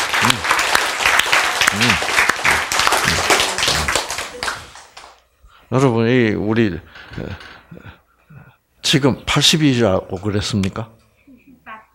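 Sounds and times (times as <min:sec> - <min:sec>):
applause: 0:00.0 - 0:05.2
speech: 0:00.3 - 0:00.5, 0:01.7 - 0:02.1, 0:05.7 - 0:08.0, 0:08.9 - 0:11.0.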